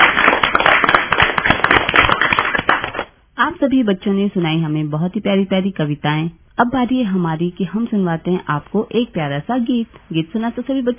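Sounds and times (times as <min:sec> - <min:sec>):
children clapping: 0:00.0 - 0:03.1
speech: 0:03.6 - 0:10.9.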